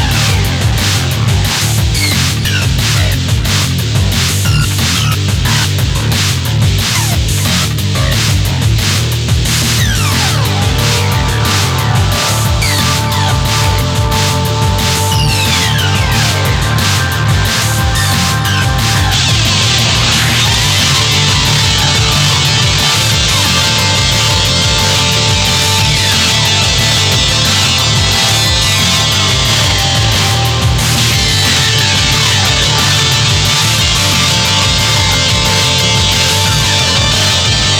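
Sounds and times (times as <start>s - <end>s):
eight guitars playing: 0.0s - 37.7s.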